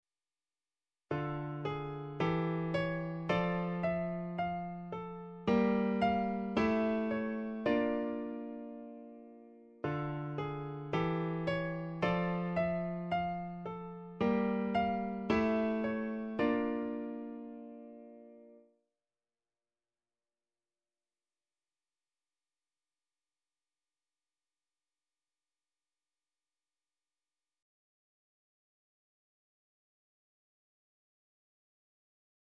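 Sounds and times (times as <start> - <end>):
minor interrupted cadence: 1.1 - 18.7.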